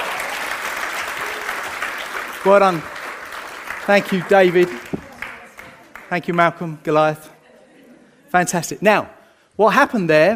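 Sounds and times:
audience applause: 0:00.0 - 0:06.6
speech: 0:02.4 - 0:02.9, 0:03.9 - 0:04.9, 0:06.1 - 0:07.3, 0:08.3 - 0:10.3
laughter: 0:07.3 - 0:08.6.

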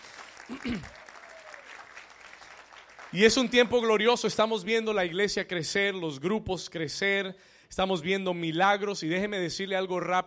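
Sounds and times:
audience applause: 0:00.0 - 0:04.0
speech: 0:00.5 - 0:01.0, 0:03.1 - 0:10.2.

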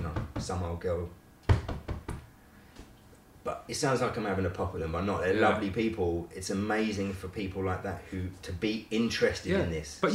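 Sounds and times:
speech: 0:00.4 - 0:01.2, 0:03.4 - 0:10.1
knocking on a car window: 0:01.5 - 0:02.2.

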